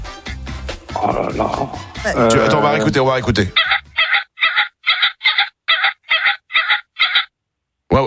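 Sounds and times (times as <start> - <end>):
speech: 1.0 - 3.7
pheasant calling harshly: 3.5 - 7.3.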